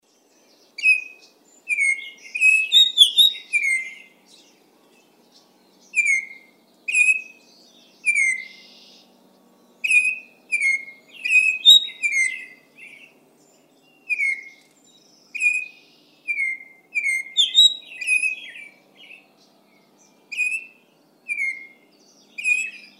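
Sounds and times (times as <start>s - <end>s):
Baltimore oriole whistled song: 0.7s - 4.2s, 5.7s - 9.1s, 9.8s - 13.2s, 13.9s - 14.7s, 15.3s - 19.3s, 20.0s - 22.9s.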